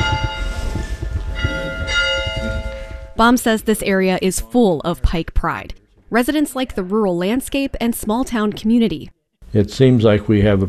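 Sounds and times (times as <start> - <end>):
school bell ringing: 0.0 - 3.4
speech: 3.2 - 10.6.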